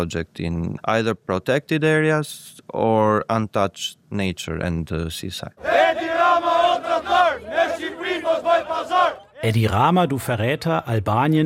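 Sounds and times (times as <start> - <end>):
speech: 0.0 - 6.0, 8.2 - 11.4
protesters chanting slogans in unison: 5.6 - 9.5.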